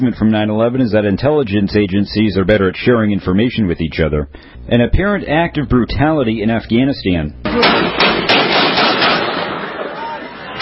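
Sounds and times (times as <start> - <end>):
speech: 0.0 - 8.3
gunfire from a social media video: 7.5 - 9.9.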